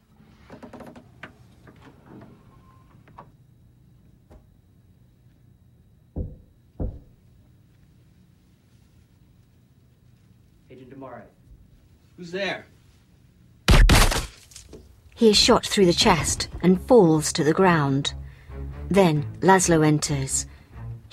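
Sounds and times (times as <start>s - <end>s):
knocking on wood inside a wardrobe: 6.2s - 7.2s
speech: 10.8s - 11.4s, 12.2s - 12.7s, 15.2s - 18.2s, 18.9s - 20.5s.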